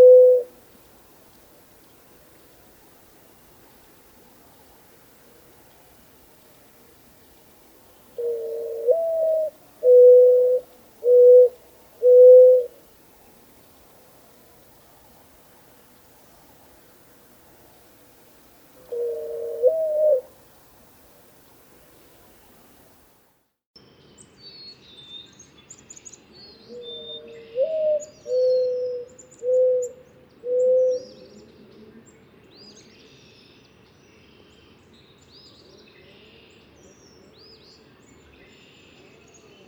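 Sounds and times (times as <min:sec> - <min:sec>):
mourning dove cooing: 0:00.0 - 0:00.6, 0:07.8 - 0:12.9, 0:18.7 - 0:21.0, 0:26.7 - 0:31.5.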